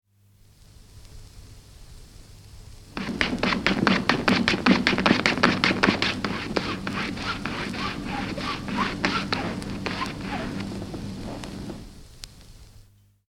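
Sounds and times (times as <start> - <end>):
stropping a razor: 3.0 - 11.5.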